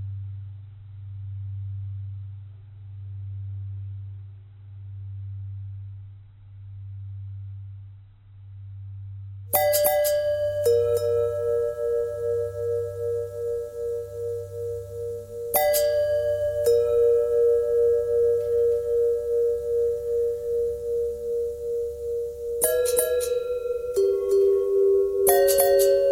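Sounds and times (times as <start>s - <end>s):
long bell tones: 9.6s - 26.1s.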